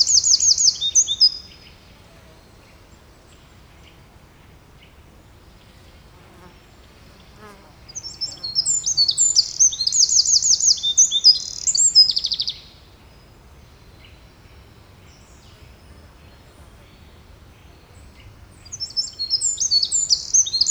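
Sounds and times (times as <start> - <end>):
Eurasian wren Troglodytes troglodytes trilling: 0.0 - 1.6, 7.4 - 12.7, 17.8 - 20.6.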